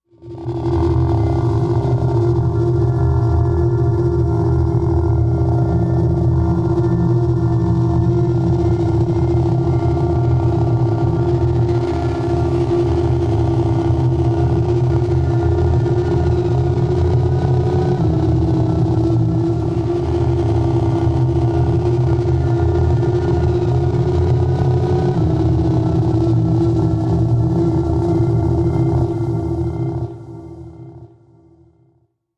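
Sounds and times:
crawling sci-fi ambience: 0.1s - 31.7s.

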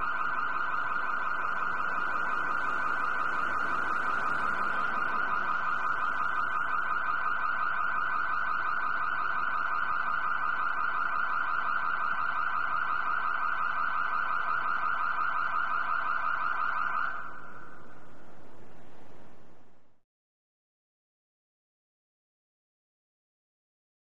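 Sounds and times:
fast oscillating car alarm: 0.0s - 17.9s.

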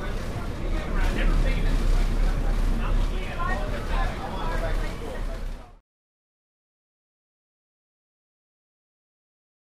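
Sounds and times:
commuter train interior: 0.0s - 5.8s.

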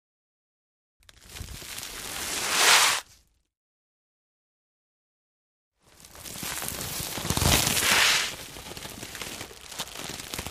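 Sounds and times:
sand sack dragging: 1.6s - 3.1s, 6.3s - 8.4s.

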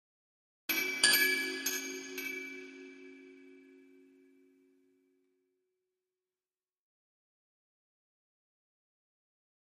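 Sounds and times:
Chinese chime bells: 0.7s - 4.4s.

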